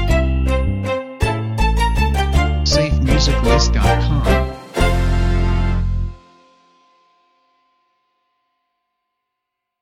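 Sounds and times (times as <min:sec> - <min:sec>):
christmas song intro: 0:00.0 - 0:07.2.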